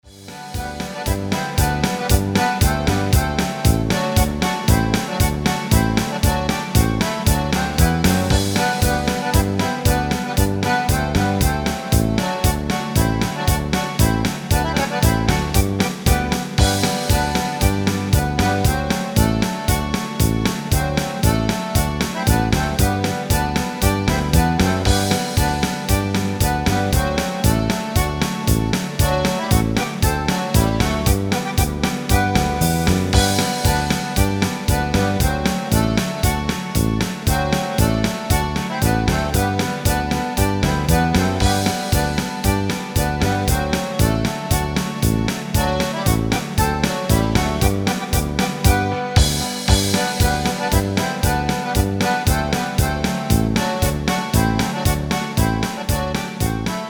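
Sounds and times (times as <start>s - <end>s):
Czech polka music: 0.0s - 56.8s.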